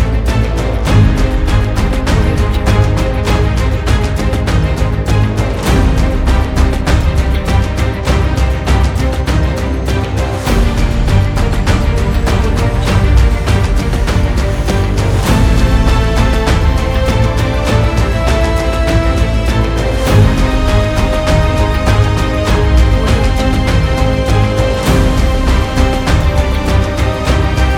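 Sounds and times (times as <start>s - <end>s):
emotional powerful motivational cinematic music: 0.0s - 27.7s.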